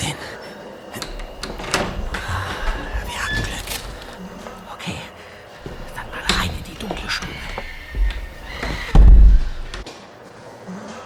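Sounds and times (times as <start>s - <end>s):
door being opened: 1.0s - 4.7s, 5.6s - 9.8s.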